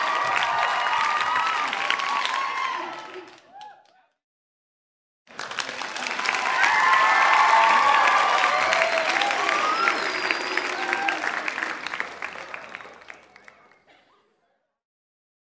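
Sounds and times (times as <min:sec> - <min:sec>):
loud ovation from a small crowd indoors: 0:00.0 - 0:03.9, 0:05.4 - 0:13.7.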